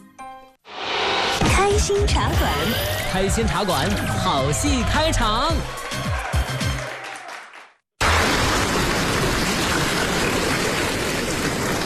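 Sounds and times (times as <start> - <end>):
speech: 1.8 - 6.2
audience applause: 4.6 - 11.8.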